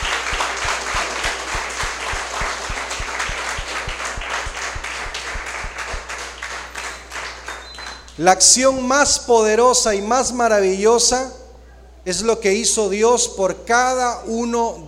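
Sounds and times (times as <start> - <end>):
loud audience applause: 0.0 - 8.2
speech: 8.2 - 11.4, 12.0 - 14.8.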